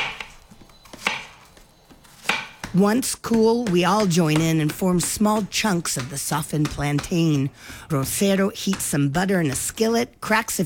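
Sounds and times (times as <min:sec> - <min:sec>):
softened plantain mashed with the bottom of a bottle: 0:00.0 - 0:10.0
speech: 0:02.8 - 0:10.6.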